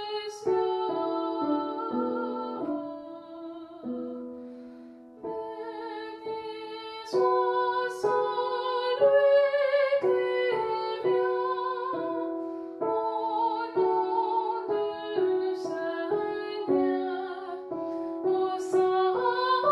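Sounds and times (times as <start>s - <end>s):
soprano singing a mass: 0.0s - 19.7s.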